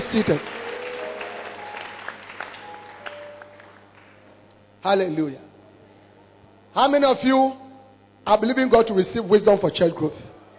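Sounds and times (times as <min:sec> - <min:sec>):
audience clapping hands: 0:00.0 - 0:04.4
speech: 0:00.1 - 0:00.6, 0:04.8 - 0:05.5, 0:06.8 - 0:07.6, 0:08.2 - 0:10.3.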